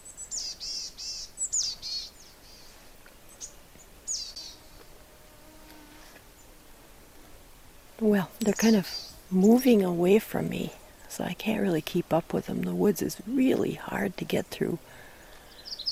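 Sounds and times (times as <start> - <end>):
boreal chickadee calling: 0.0 - 4.9, 8.2 - 11.0, 15.0 - 15.9
speech: 8.0 - 15.0.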